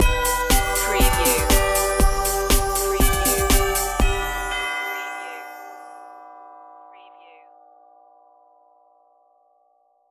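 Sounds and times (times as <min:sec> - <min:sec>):
synthesized outro melody: 0:00.0 - 0:05.6.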